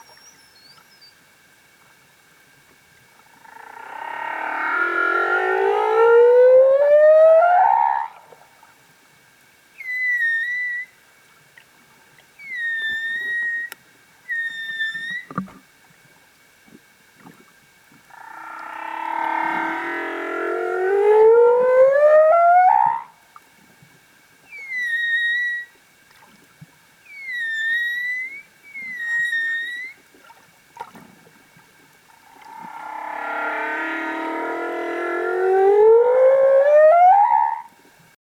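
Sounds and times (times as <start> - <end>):
humpback whale singing in Tonga: 3.3 - 8.2, 9.8 - 11.0, 12.4 - 15.4, 18.1 - 23.2, 24.4 - 25.8, 27.0 - 30.1, 32.2 - 37.8.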